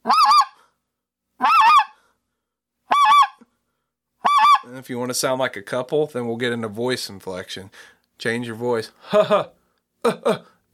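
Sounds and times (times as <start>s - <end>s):
basic yodel on a goose call: 0.0s - 0.6s, 2.9s - 3.4s, 4.2s - 4.7s
speech: 4.7s - 10.5s.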